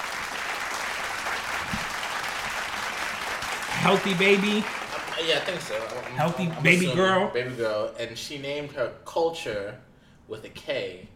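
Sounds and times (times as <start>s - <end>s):
hand clapping: 0.0s - 6.9s
speech: 3.8s - 11.1s.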